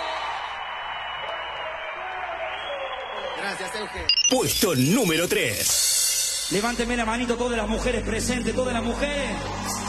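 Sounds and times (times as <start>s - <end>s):
audience applause and cheering for a band at a live event: 0.0s - 4.2s, 9.1s - 9.8s
speech: 3.4s - 9.8s.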